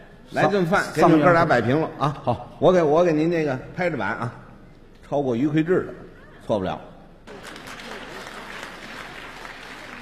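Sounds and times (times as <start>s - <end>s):
speech: 0.3s - 4.4s, 5.1s - 6.9s
audience applause: 7.3s - 10.0s.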